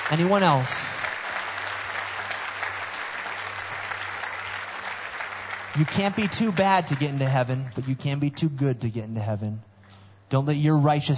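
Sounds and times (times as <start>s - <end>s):
audience clapping: 0.0s - 8.6s
speech: 0.1s - 0.9s, 5.8s - 9.7s, 10.3s - 11.1s.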